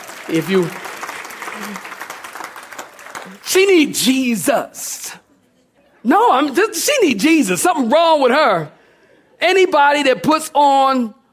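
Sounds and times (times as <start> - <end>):
crowd clapping hands: 0.0 - 4.1
speech: 0.3 - 0.8, 1.6 - 1.9, 3.3 - 5.2, 6.0 - 8.8, 9.4 - 11.2.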